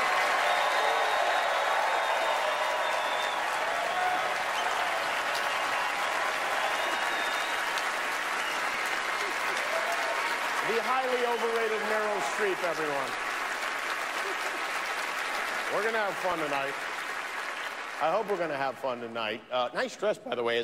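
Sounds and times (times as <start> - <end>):
faint cheers or whistles: 0.0 - 12.2
audience applause: 0.0 - 19.2
speech: 10.8 - 13.2, 15.7 - 16.9, 18.0 - 20.6.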